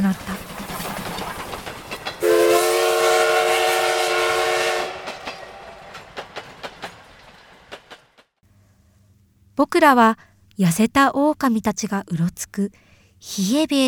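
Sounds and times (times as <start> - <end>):
train rumbling: 0.0 - 8.4
speech: 9.6 - 13.8.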